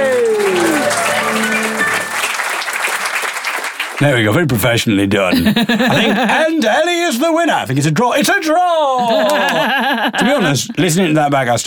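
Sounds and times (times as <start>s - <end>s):
round of applause: 0.0s - 4.8s, 9.1s - 9.7s
speech: 4.0s - 11.6s
laughter: 5.3s - 6.8s, 9.0s - 11.0s.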